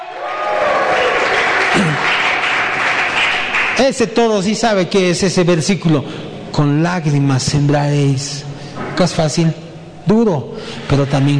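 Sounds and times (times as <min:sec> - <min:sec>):
audience applause and cheering: 0:00.0 - 0:03.8
speech: 0:01.8 - 0:02.1, 0:03.8 - 0:11.3.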